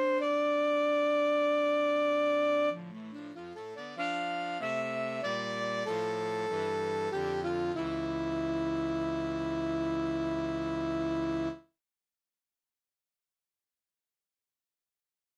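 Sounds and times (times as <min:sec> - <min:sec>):
saxophone playing a prelude: 0:00.0 - 0:11.6.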